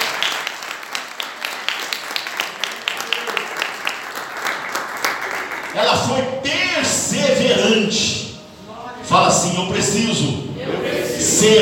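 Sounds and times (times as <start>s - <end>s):
audience applauding: 0.0s - 6.0s
speech: 5.8s - 8.2s, 9.1s - 11.6s.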